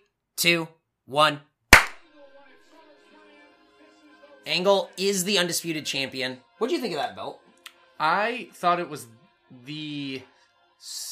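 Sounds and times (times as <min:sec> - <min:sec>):
speech: 0:00.4 - 0:01.5, 0:04.5 - 0:07.4, 0:08.0 - 0:11.1
single hand clap: 0:01.8 - 0:02.0.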